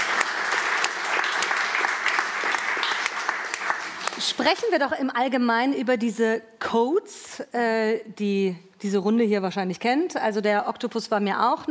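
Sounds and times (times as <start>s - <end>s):
audience applause: 0.0s - 4.5s
speech: 4.2s - 11.6s.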